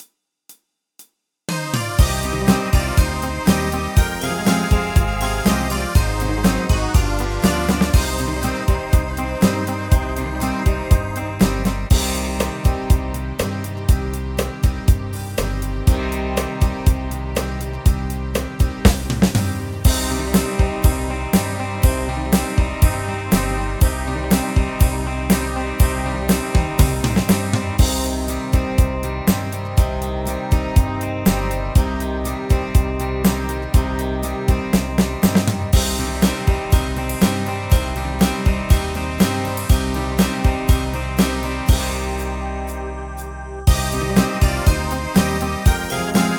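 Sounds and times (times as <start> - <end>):
music beat: 1.5 - 46.3.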